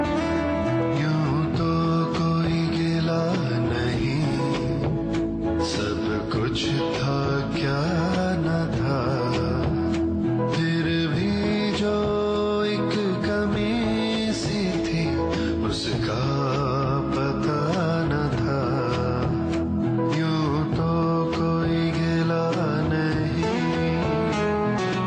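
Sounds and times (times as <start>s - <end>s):
ghazal music: 0.0s - 25.0s.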